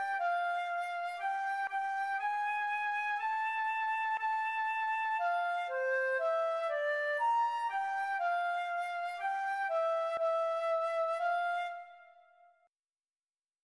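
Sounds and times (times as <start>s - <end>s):
recorder playing an allegro moderato: 0.0s - 12.1s.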